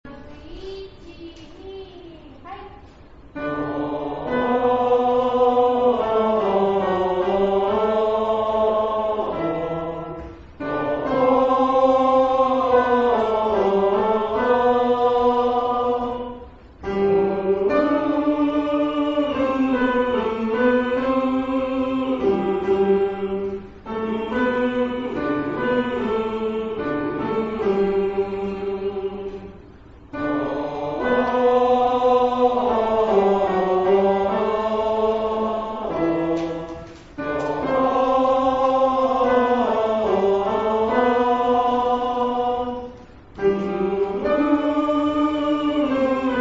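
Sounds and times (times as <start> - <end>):
male choir singing high: 3.4 - 46.3.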